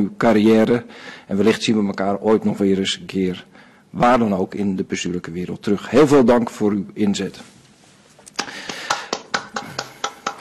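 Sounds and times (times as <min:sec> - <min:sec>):
speech: 0:00.0 - 0:07.5
hand clapping: 0:08.3 - 0:10.4.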